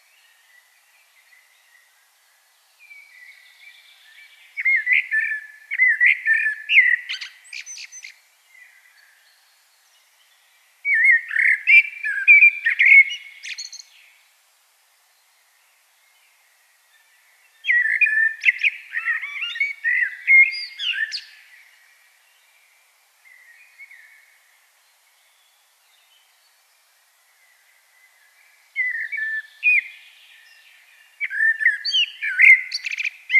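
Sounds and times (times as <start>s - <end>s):
Common blackbird song: 2.8s - 9.5s, 10.8s - 14.1s, 17.0s - 21.8s, 27.5s - 33.3s.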